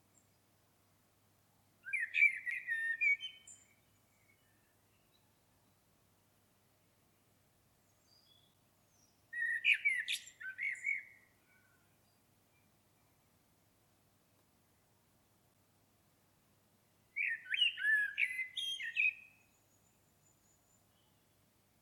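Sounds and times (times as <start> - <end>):
common blackbird song: 0.0 - 0.5, 1.8 - 6.1, 7.0 - 13.4, 17.1 - 21.8.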